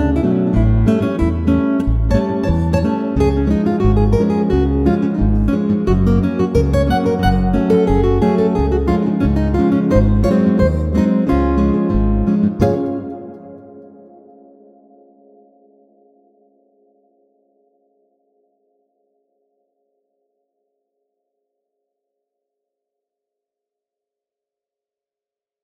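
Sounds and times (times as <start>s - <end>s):
two guitars playing together: 0.0s - 14.8s.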